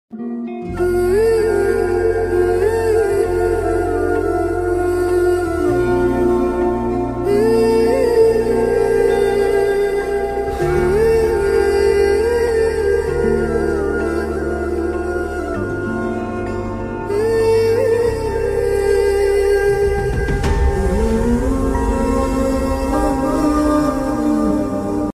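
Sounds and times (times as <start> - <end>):
sad emotional background music ringtone: 0.1 - 25.1.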